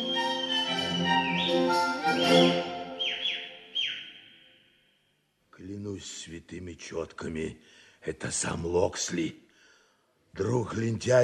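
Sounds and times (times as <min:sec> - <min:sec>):
alarm whistle: 0:00.0 - 0:04.8
speech: 0:06.5 - 0:09.4, 0:10.3 - 0:11.2.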